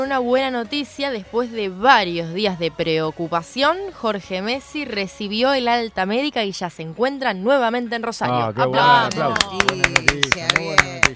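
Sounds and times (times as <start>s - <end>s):
speech: 0.0s - 10.8s
applause: 9.1s - 11.1s.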